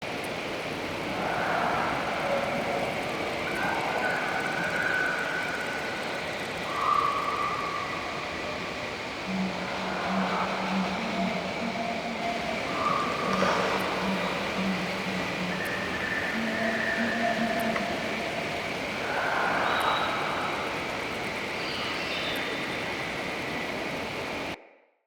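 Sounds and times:
night forest ambience bed: 0.0 - 24.8.

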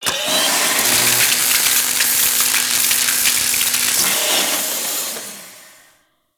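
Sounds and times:
welder working ice: 0.0 - 5.9.

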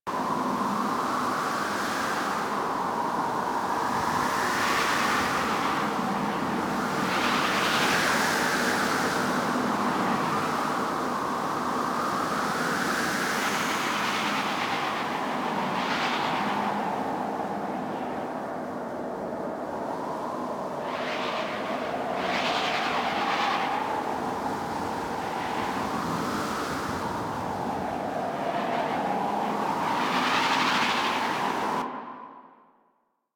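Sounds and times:
medium exterior wind in Gas City: 0.0 - 32.8.

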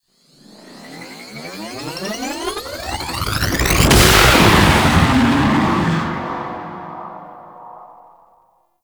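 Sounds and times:
ship taking off: 0.2 - 8.1.

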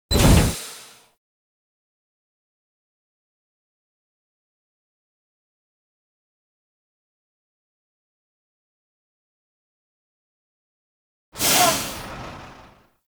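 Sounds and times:
gear stinger: 0.1 - 0.7.

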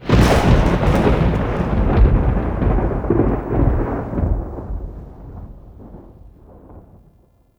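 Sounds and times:
thunder clap on the plains: 0.0 - 7.4.

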